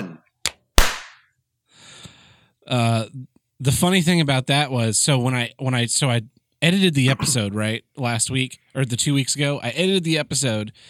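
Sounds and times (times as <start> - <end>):
single hand clap for sync: 0.4 - 1.3
speech: 2.7 - 10.8.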